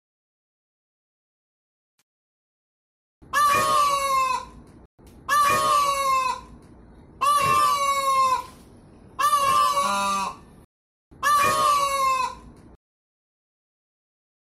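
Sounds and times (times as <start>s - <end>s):
peafowl braying calls: 3.3s - 4.6s, 5.2s - 6.6s, 7.2s - 8.6s, 9.2s - 10.5s, 11.2s - 12.6s.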